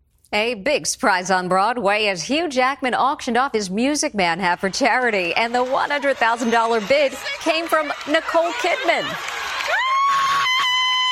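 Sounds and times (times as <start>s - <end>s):
speech: 0.3s - 9.4s
crowd cheering and roaring: 4.4s - 11.0s.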